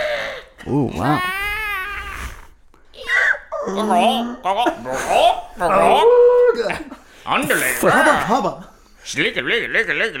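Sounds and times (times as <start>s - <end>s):
speech: 0.6s - 1.4s, 3.6s - 10.1s
voice imitating a chorus of bird and animal screeches: 0.7s - 3.7s.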